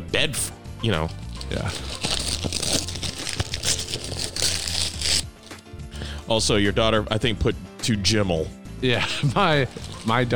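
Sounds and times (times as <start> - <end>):
speech: 0.1 - 2.8, 6.3 - 10.3
wrapping paper on a gift crinkling as it is unwrapped: 1.2 - 5.7, 9.5 - 10.3.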